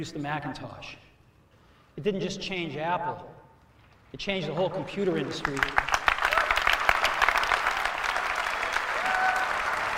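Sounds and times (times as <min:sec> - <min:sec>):
speech: 0:00.0 - 0:01.1, 0:02.0 - 0:03.4, 0:04.1 - 0:05.9
journalists applauding: 0:04.4 - 0:09.9.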